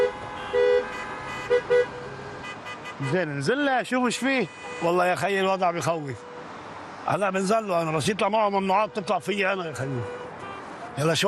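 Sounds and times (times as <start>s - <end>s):
car horn honking behind a stopped car: 0.0s - 3.4s, 4.0s - 5.5s, 9.8s - 10.8s
low hum of traffic: 0.0s - 11.2s
speech: 3.0s - 6.3s, 7.1s - 10.2s, 11.0s - 11.2s.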